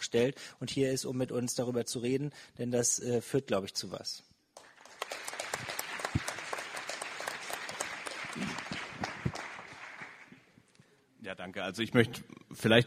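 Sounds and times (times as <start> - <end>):
speech: 0.1 - 4.3, 11.3 - 12.8
audience applause: 4.6 - 10.5.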